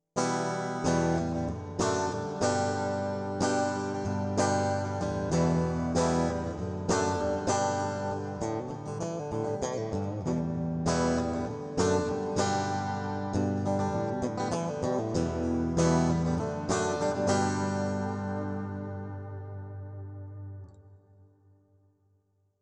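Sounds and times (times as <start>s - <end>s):
Zoom G2X FOUR acoustic guitar simulation: 0.2s - 21.4s.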